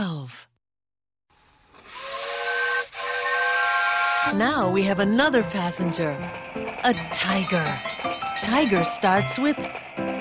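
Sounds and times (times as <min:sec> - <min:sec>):
steam hissing: 0:01.8 - 0:04.3
steam train whistle: 0:01.9 - 0:04.6
speech: 0:04.3 - 0:10.0.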